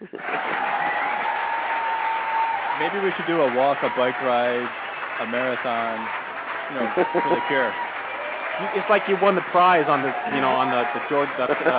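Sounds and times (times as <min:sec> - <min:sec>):
laughter: 0:00.0 - 0:01.6, 0:06.7 - 0:07.8, 0:08.6 - 0:11.7
canned applause from a sound-effect button: 0:00.0 - 0:11.7
speech: 0:02.8 - 0:07.8, 0:08.6 - 0:11.7.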